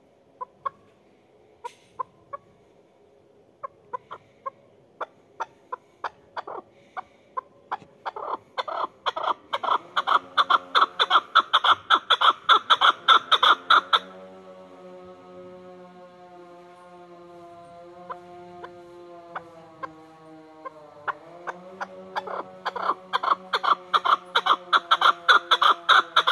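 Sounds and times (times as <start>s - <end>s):
mountain partridge calling: 7.7s - 14.1s, 22.2s - 26.2s.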